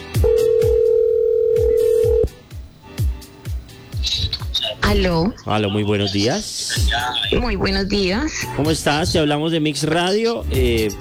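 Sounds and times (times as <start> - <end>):
outgoing phone call ringback tone: 0.0 - 4.8
rhythmic musical beat: 0.0 - 5.5, 6.3 - 10.9
speech: 4.9 - 10.9.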